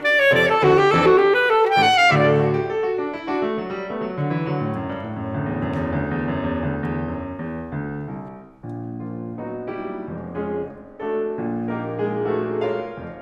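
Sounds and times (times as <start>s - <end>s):
alto saxophone playing a concerto rondo: 0.0s - 3.2s
piano playing a string orchestra reduction: 0.0s - 13.1s.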